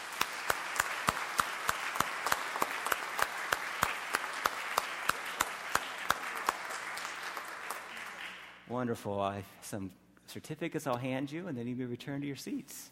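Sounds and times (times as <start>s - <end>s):
person clapping steadily: 0.0s - 8.5s
congregation applauding to welcome a family: 0.0s - 8.7s
speech: 8.7s - 12.9s.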